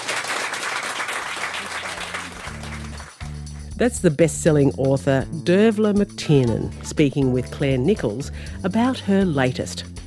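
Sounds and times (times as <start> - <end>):
audience applause: 0.0 - 3.3
speech: 3.8 - 10.0.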